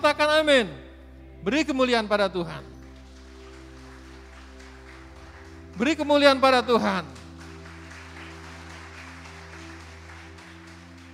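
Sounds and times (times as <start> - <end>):
speech: 0.0 - 0.8, 1.4 - 2.7, 5.8 - 7.2
audience clapping hands: 2.7 - 11.1.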